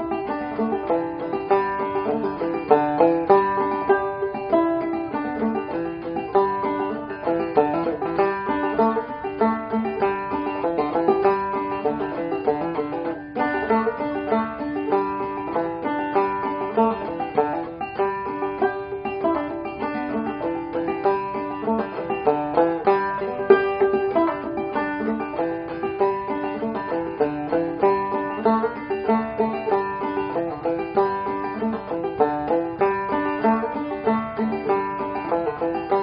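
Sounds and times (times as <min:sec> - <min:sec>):
banjo playing: 0:00.0 - 0:36.0.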